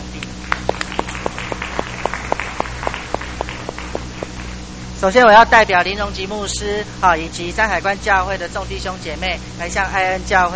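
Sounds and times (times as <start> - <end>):
applause: 0.2 - 4.6
speech: 5.0 - 10.5.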